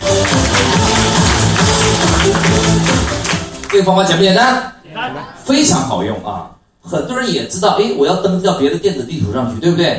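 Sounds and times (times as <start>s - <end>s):
audience applause: 0.0s - 3.9s
speech: 3.8s - 9.9s.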